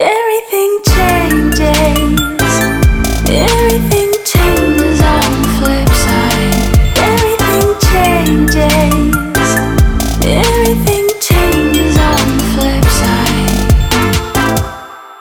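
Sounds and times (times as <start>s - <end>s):
trap beat: 0.9s - 14.8s.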